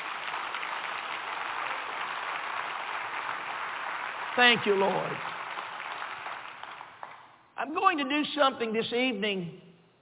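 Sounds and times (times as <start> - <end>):
audience applause: 0.0 - 7.3
speech: 4.4 - 5.4, 7.7 - 9.6.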